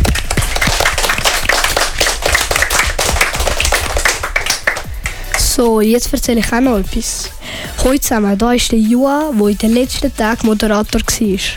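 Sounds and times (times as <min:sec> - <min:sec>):
applause: 0:00.0 - 0:05.5
speech: 0:05.6 - 0:11.5.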